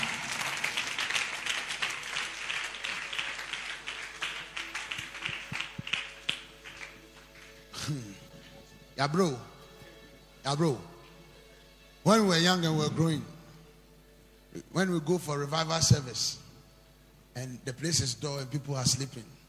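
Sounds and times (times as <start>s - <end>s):
audience clapping: 0.0s - 8.4s
speech: 9.0s - 9.5s, 10.4s - 10.9s, 12.0s - 13.3s, 14.8s - 16.4s, 17.4s - 19.4s.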